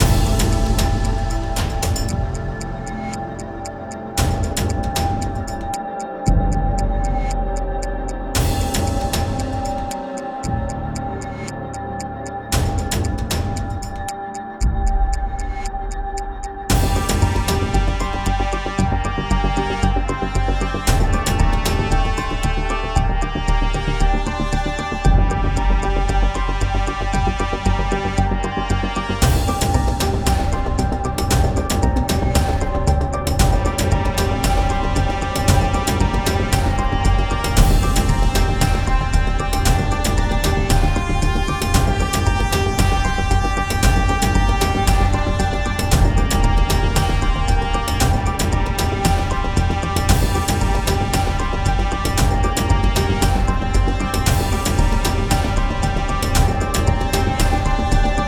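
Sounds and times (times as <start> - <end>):
epic cinematic music: 0.0 - 58.2.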